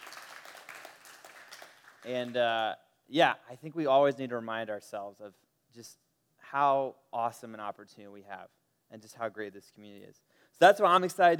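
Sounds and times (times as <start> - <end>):
crowd applause: 0.0 - 2.3
speech: 2.0 - 11.3.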